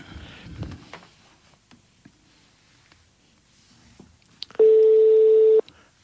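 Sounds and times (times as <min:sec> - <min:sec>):
ringback tone from a phone call: 0:04.6 - 0:05.6.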